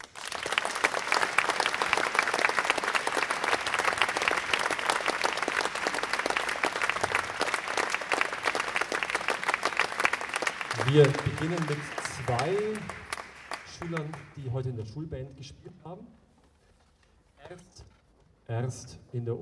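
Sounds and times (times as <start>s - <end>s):
audience applause: 0.0s - 14.6s
speech: 10.9s - 13.0s, 13.8s - 16.1s, 18.5s - 19.4s.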